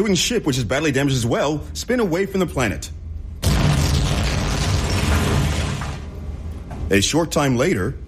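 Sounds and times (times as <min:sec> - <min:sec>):
speech: 0:00.0 - 0:03.0, 0:06.9 - 0:08.0
shuttle crashing onto a planet: 0:03.4 - 0:06.0.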